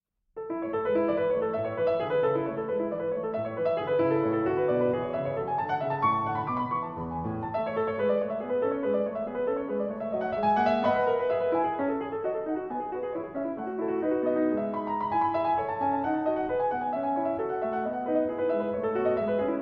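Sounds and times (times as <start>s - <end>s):
harpsichord sonata in A major: 0.5s - 19.5s.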